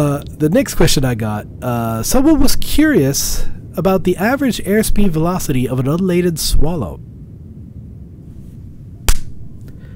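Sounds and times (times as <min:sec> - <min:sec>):
speech: 0:00.0 - 0:07.1
facepalm slap: 0:09.1 - 0:09.4.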